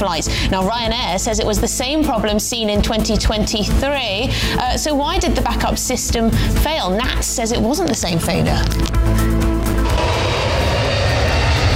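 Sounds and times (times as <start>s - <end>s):
speech: 0.0s - 9.3s
aircraft taking off at Manchester Airport: 9.7s - 11.7s.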